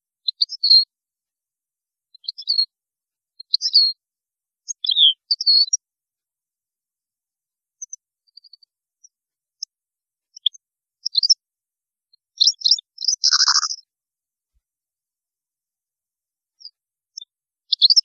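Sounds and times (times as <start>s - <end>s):
European goldfinch twittering song: 4.8s - 5.8s, 12.4s - 13.8s.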